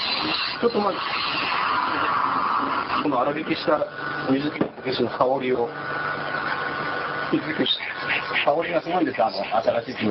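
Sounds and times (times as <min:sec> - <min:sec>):
wood lathe turning work, cutting tool scraping: 0:00.0 - 0:10.0
speech: 0:00.2 - 0:06.1, 0:07.3 - 0:10.0.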